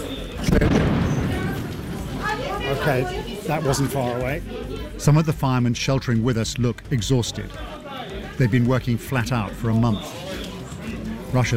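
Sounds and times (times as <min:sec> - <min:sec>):
steady outdoor noise: 0:00.0 - 0:11.5
speech: 0:00.4 - 0:01.1, 0:02.7 - 0:07.8, 0:08.4 - 0:10.4, 0:11.3 - 0:11.5
air defense fire: 0:00.4 - 0:02.4
heavy explosion: 0:00.4 - 0:02.7.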